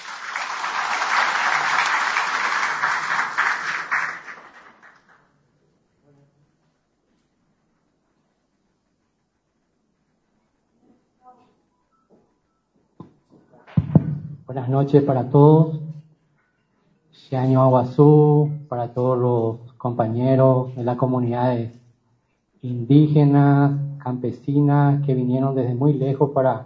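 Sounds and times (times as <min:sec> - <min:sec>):
loud applause: 0:00.0 - 0:05.3
speech: 0:14.7 - 0:15.8, 0:17.3 - 0:21.8, 0:22.6 - 0:26.6.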